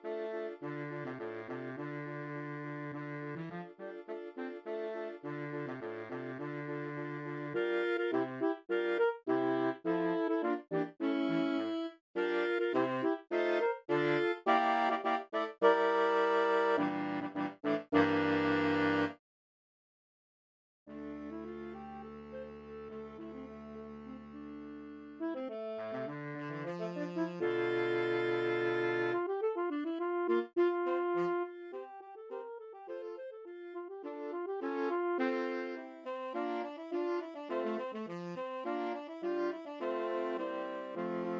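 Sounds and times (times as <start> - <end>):
soprano alto tenor and baritone saxophone quartet playing a gigue: 0.0 - 19.2, 21.0 - 41.3.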